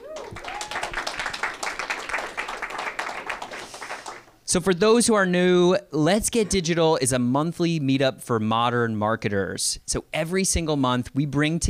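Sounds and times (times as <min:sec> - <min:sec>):
voice whooping: 0:00.0 - 0:01.1
crowd applauding: 0:00.0 - 0:04.4
speech: 0:04.5 - 0:11.6.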